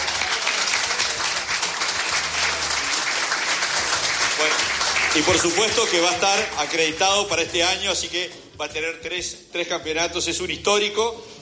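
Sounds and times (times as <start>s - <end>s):
applause: 0.0s - 7.6s
speech: 5.2s - 11.4s.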